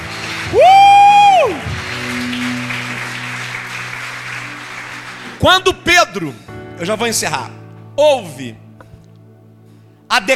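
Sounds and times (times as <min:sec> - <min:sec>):
audience applause: 0:00.0 - 0:05.5
speech: 0:05.4 - 0:08.6, 0:10.1 - 0:10.3.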